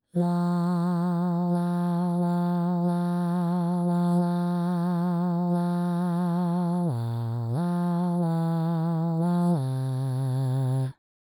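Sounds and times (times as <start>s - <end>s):
bass: 0.1s - 11.0s.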